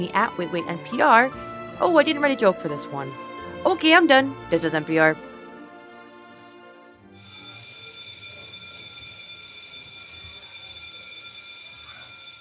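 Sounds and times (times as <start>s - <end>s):
speech: 0.0s - 5.3s
bell ringing: 7.2s - 12.3s.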